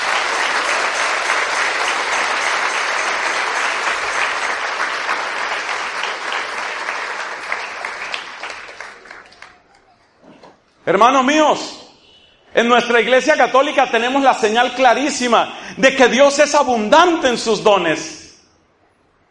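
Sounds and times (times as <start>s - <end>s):
crowd applauding: 0.0s - 10.0s
speech: 10.9s - 11.8s, 12.6s - 18.2s.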